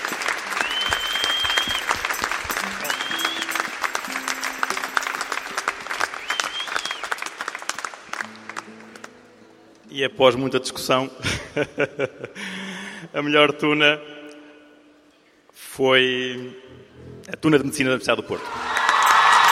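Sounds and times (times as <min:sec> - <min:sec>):
audience applause: 0:00.0 - 0:09.1, 0:18.4 - 0:19.5
speech: 0:10.0 - 0:12.4, 0:13.1 - 0:14.1, 0:15.8 - 0:18.7.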